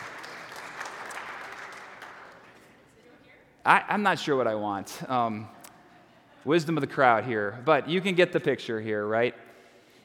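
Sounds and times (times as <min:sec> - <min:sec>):
audience applause: 0:00.0 - 0:02.6
speech: 0:03.6 - 0:05.6, 0:06.4 - 0:09.4.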